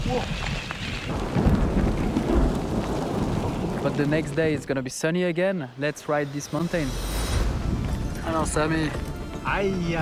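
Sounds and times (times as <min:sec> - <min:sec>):
rolling thunder: 0:00.0 - 0:04.7
falling rain: 0:00.0 - 0:10.0
speech: 0:00.1 - 0:01.4, 0:03.9 - 0:07.2, 0:08.3 - 0:10.0.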